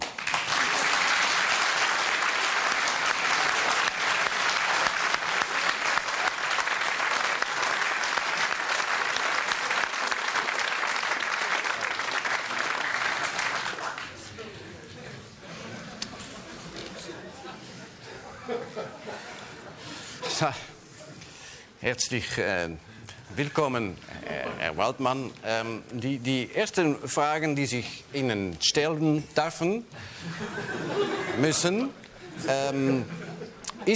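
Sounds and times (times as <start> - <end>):
crowd applause: 0.0 - 14.4
laughter: 17.5 - 20.1, 30.1 - 33.9
speech: 20.4 - 20.7, 21.9 - 33.2.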